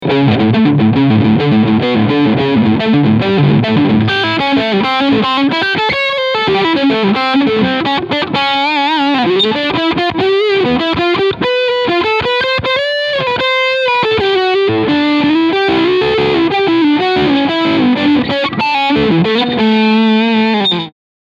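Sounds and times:
Kramer Focus VT211S guitar overdrive on middle pickup: 0.0 - 21.0.

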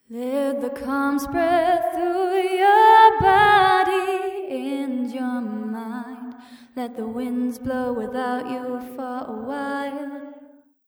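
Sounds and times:
unnatural vocals: 0.1 - 10.3.

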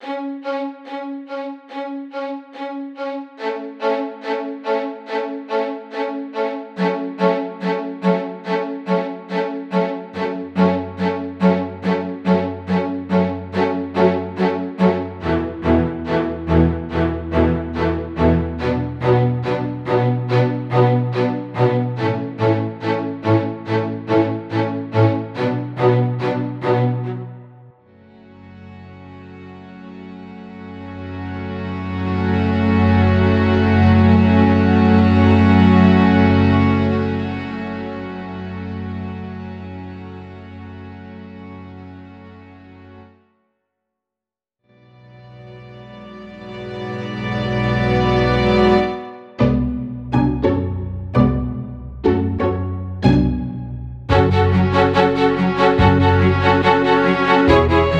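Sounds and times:
strings: 0.0 - 43.2, 44.7 - 57.9.

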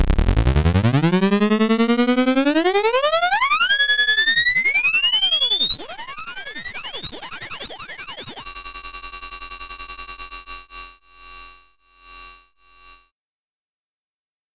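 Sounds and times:
ring-modulated sine and saw synthesizer tones: 0.2 - 13.1.

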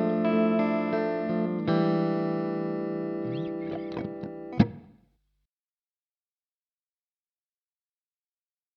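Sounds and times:
clean electric guitar on neck and middle pickup position: 0.0 - 4.9.

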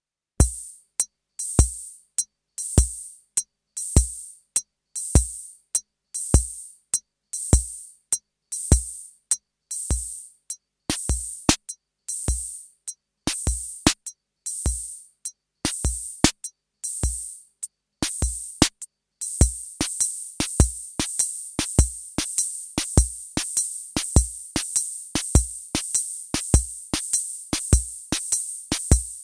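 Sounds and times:
Roland CR-78 drum machine swing and shuffle rhythm: 0.4 - 0.7, 1.5 - 1.9, 2.8 - 3.1, 5.2 - 5.5, 7.5 - 7.8, 9.9 - 10.2, 10.9 - 12.6, 13.3 - 15.0, 15.7 - 17.4, 18.0 - 29.2.

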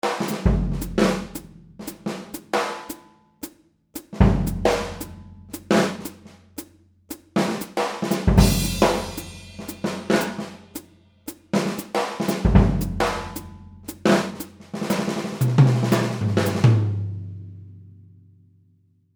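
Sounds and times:
jazz on a Slingerland drum kit: 0.0 - 17.7.

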